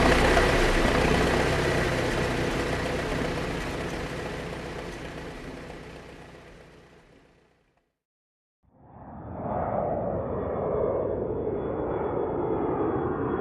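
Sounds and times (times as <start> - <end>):
airplane: 0.0 - 7.2, 8.7 - 13.3
car driving: 0.0 - 7.6
tractor: 0.0 - 7.7
motorcycle: 0.0 - 7.9.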